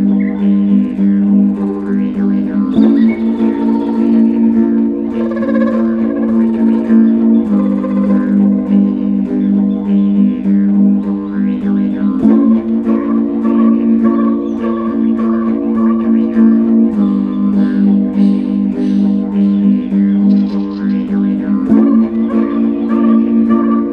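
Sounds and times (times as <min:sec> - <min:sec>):
live didgeridoo playing: 0:00.0 - 0:23.9
morning ambience: 0:00.0 - 0:23.9.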